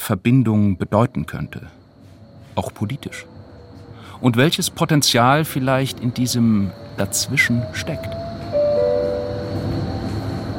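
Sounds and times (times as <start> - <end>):
subway train rail car rumbling at an underground U-Bahn station in Berlin: 0.0 - 10.5
speech: 0.1 - 1.8, 2.6 - 3.3, 4.1 - 8.2
thin high squeal: 0.6 - 10.5.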